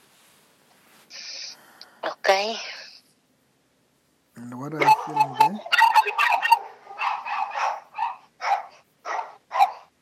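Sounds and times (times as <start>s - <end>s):
speech: 2.4s - 2.7s, 4.5s - 5.4s
dogs barking: 4.8s - 10.0s.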